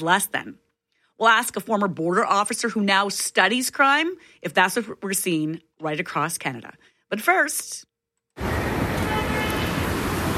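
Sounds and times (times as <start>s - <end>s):
speech: 0.0s - 0.6s, 1.2s - 8.8s
traffic road noise on Portage Avenue: 8.4s - 10.3s.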